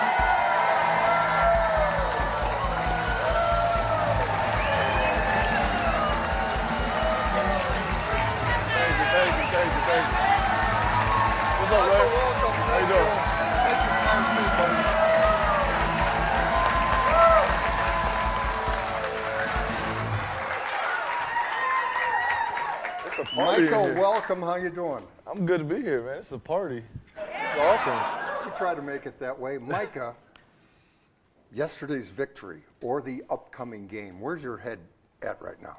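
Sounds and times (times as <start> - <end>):
audience whoops: 0.0 - 7.9, 13.4 - 18.7, 20.8 - 23.3
audience applause and cheering on a Packers talk show: 0.0 - 24.4
speech: 24.3 - 27.0, 27.6 - 30.3, 31.5 - 35.7.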